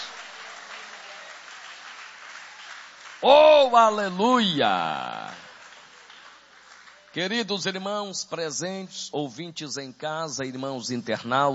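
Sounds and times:
audience applauding: 0:00.0 - 0:07.4
speech: 0:03.2 - 0:05.3, 0:07.1 - 0:11.5.

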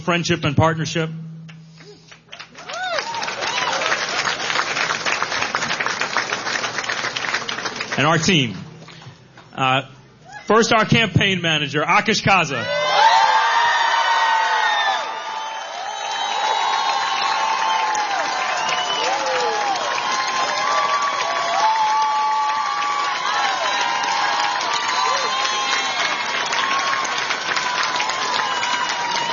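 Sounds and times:
speech: 0:00.0 - 0:01.2, 0:08.0 - 0:08.6, 0:09.6 - 0:12.8
crowd cheering and applauding: 0:02.2 - 0:08.0, 0:12.7 - 0:29.3.

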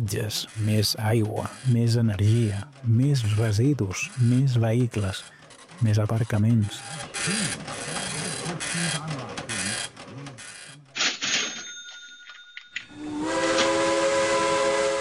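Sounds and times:
speech: 0:00.0 - 0:07.8, 0:08.7 - 0:09.2
steam locomotive hissing and churning: 0:13.0 - 0:14.9.

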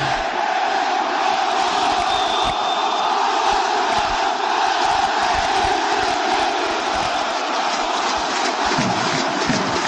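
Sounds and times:
Vasco football fans singing in stadium: 0:00.0 - 0:09.8.

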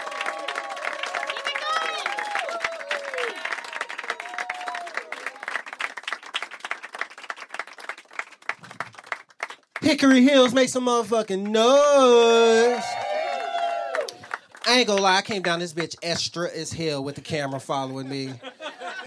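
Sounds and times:
high whoops and whistling cheers: 0:00.0 - 0:05.3, 0:12.5 - 0:14.2
comedy club audience clapping: 0:00.0 - 0:16.8
speech: 0:09.9 - 0:13.0, 0:14.7 - 0:18.5
laughter: 0:17.1 - 0:19.0.

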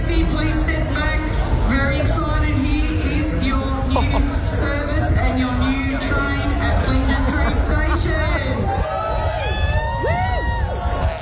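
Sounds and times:
laughter: 0:00.0 - 0:11.1
crowd of train fans cheering on a station platform: 0:00.0 - 0:11.2
speech: 0:04.0 - 0:04.7
whoops and shouts: 0:08.6 - 0:11.2.

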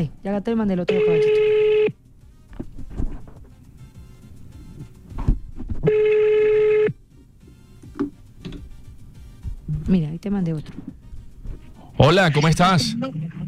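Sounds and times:
speech: 0:00.0 - 0:02.0, 0:09.9 - 0:10.9, 0:12.0 - 0:13.3
telephone call ringing before answer: 0:00.9 - 0:02.0, 0:05.9 - 0:07.0.

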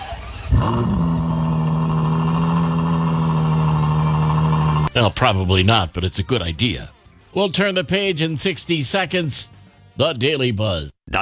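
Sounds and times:
car engine revving: 0:00.0 - 0:04.9
speech: 0:00.6 - 0:01.1, 0:05.0 - 0:11.2.

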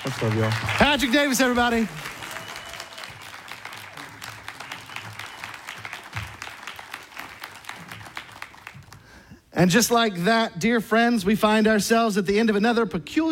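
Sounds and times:
speech: 0:00.0 - 0:02.1, 0:09.6 - 0:13.2
audience applause: 0:00.0 - 0:09.3.

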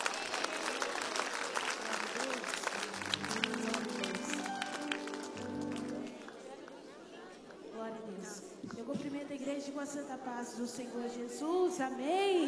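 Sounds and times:
audience applause: 0:00.0 - 0:06.9
murmur of voices: 0:00.0 - 0:12.4
speech: 0:09.3 - 0:12.4.

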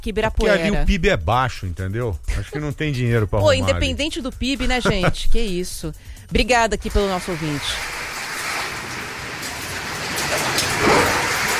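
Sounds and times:
speech: 0:00.0 - 0:08.0
laughter: 0:00.4 - 0:01.6, 0:02.3 - 0:04.0, 0:04.6 - 0:05.4
brief brighter splashes: 0:06.8 - 0:11.5
rain falling over São Paulo: 0:07.0 - 0:11.5.

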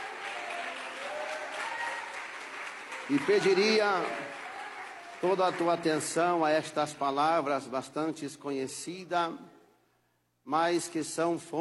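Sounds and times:
audience applause: 0:00.0 - 0:06.4
speech: 0:03.1 - 0:04.4, 0:05.2 - 0:09.5, 0:10.4 - 0:11.5.

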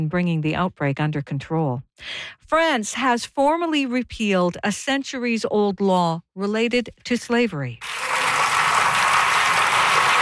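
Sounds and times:
speech: 0:00.0 - 0:08.2
lawmakers applauding in the French National Assembly: 0:07.8 - 0:10.1.

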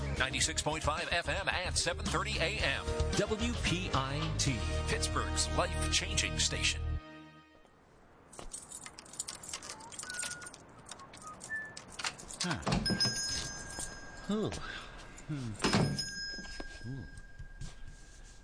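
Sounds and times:
speech: 0:00.2 - 0:06.9, 0:14.3 - 0:15.9
small bell above shop door ringing: 0:08.6 - 0:18.1.

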